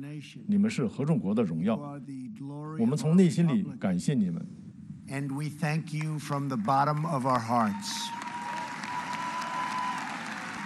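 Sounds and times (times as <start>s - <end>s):
speech: 0.0s - 8.3s
audience applause: 6.5s - 10.6s.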